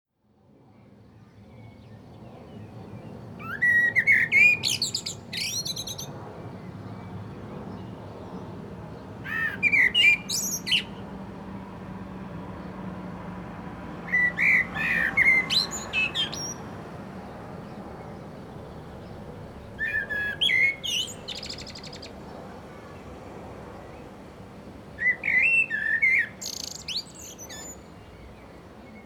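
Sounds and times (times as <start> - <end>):
common blackbird singing: 3.4 - 6.2, 9.3 - 11.0, 14.1 - 16.7, 17.6 - 22.8, 25.0 - 29.0.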